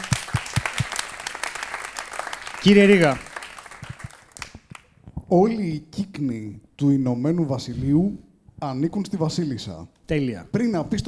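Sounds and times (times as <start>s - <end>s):
applause: 0.0s - 4.9s
speech: 2.6s - 3.3s, 5.3s - 11.0s.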